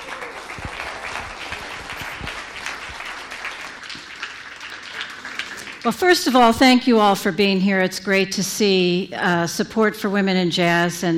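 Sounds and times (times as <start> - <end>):
audience applause: 0.0 - 6.2
speech: 5.8 - 11.1.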